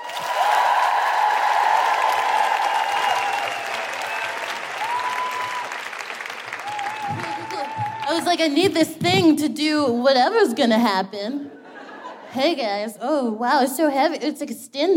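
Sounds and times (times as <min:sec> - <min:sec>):
audience applause for a performer at a live show: 0:00.0 - 0:08.3
speech: 0:08.2 - 0:11.5, 0:12.3 - 0:14.9.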